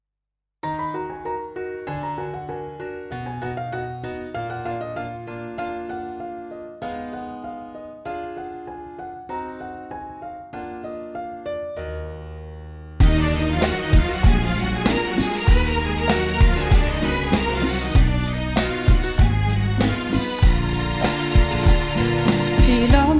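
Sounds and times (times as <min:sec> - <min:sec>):
Arabic game music for e-learning: 0:13.0 - 0:23.0.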